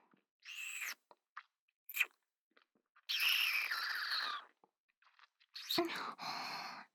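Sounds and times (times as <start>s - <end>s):
wet sucking and slurping mouth sounds from drinking blood from a bleeding finger: 0.5s - 2.2s, 2.9s - 6.0s.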